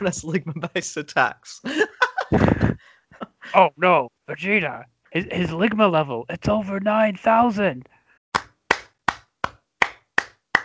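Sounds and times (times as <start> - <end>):
speech: 0.0 - 2.7, 3.5 - 7.9
laughter: 0.0 - 4.0
hand clapping: 8.4 - 10.6.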